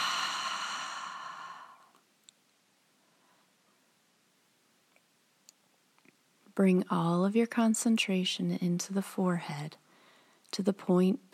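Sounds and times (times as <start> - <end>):
soft breathy exhale through the mouth during a breathing exercise: 0.0 - 2.0
speech: 6.6 - 9.8, 10.5 - 11.3.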